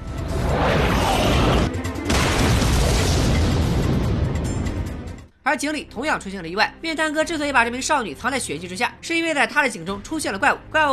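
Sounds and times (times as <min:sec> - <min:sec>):
house exploding: 0:00.2 - 0:05.0
speech: 0:05.5 - 0:10.9.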